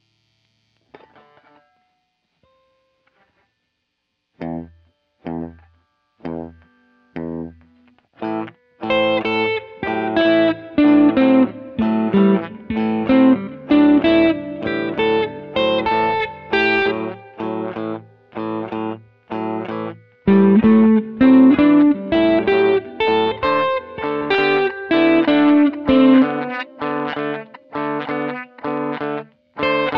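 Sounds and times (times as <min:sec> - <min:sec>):
simple solo melody for beginners: 0:08.8 - 0:29.9.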